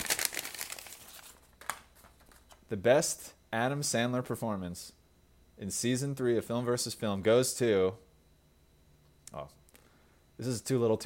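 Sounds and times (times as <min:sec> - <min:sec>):
paper envelope being handled and opened: 0:00.0 - 0:02.6
speech: 0:02.7 - 0:05.0, 0:05.6 - 0:08.0, 0:09.3 - 0:09.6, 0:10.4 - 0:11.0.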